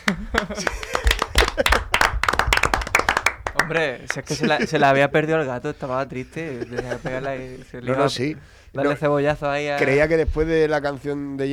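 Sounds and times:
applause, hands clapping: 0:00.0 - 0:04.4
laughter: 0:00.0 - 0:05.3, 0:06.2 - 0:07.7
speech: 0:00.1 - 0:01.0, 0:03.7 - 0:11.5.

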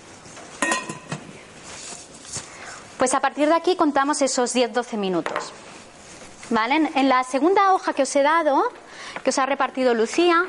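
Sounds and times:
pots and dishes clattering in a kitchen while putting an egg on to boil: 0:00.6 - 0:01.3
speech: 0:03.0 - 0:05.7, 0:06.5 - 0:10.4.

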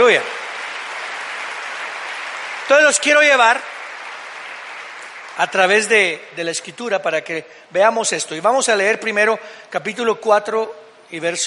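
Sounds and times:
audience applause: 0:00.0 - 0:06.2
speech: 0:00.1 - 0:00.4, 0:02.7 - 0:03.7, 0:05.4 - 0:11.4.

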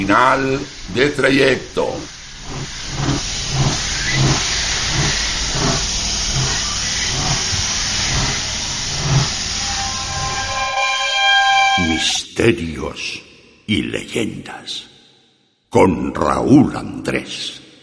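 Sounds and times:
speech: 0:00.0 - 0:04.3, 0:12.0 - 0:14.9, 0:15.7 - 0:17.6
rhythmic chuffing of a train: 0:00.0 - 0:10.7
train pulling into a station: 0:00.0 - 0:12.2.

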